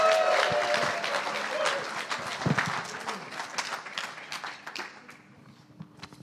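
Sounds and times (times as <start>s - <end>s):
scattered cheers and whoops: 0.0s - 2.1s
audience applause: 0.0s - 5.3s.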